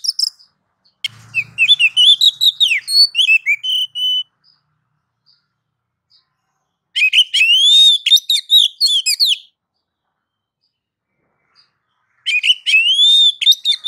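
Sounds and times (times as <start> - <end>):
female oriental magpie-robin calling to a male: 1.0 - 4.3, 7.0 - 9.5, 12.2 - 13.8.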